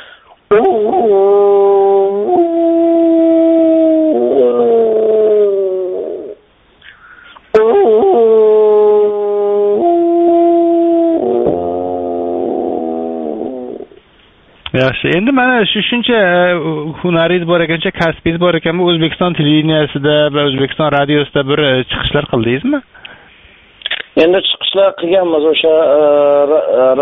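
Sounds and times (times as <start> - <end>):
speech: 0.5 - 1.4, 14.8 - 22.9, 24.2 - 27.0
wolf howling: 0.5 - 6.4, 7.5 - 14.0.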